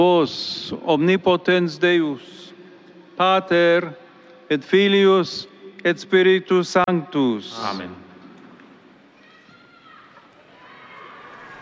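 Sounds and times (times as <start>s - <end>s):
speech: 0.0s - 2.4s, 3.2s - 8.0s
crowd applauding and cheering after the Pope's blessing: 10.3s - 11.6s.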